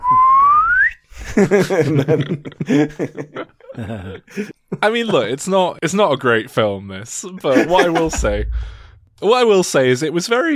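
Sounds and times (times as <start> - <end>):
person whistling a rising birdsong-like note: 0.0 - 1.0
voiced chuckling laughter: 1.2 - 4.6, 7.5 - 8.4
speech: 1.4 - 10.5.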